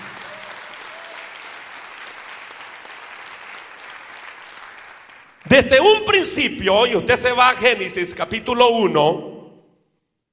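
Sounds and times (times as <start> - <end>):
audience applause: 0.0 - 5.5
speech: 5.4 - 9.3.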